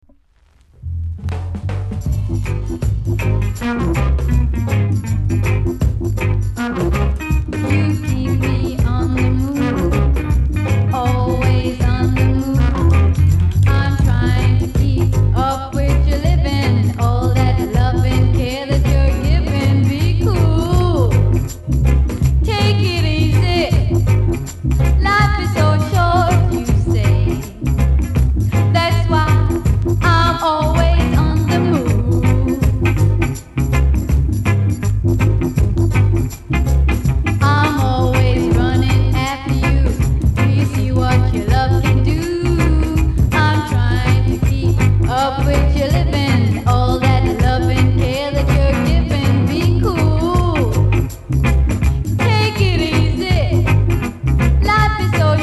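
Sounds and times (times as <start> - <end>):
reggae music: 0.1 - 55.4.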